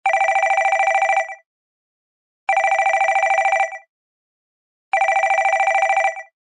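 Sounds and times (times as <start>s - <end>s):
telephone ringing: 0.1s - 1.4s, 2.5s - 3.9s, 4.9s - 6.4s.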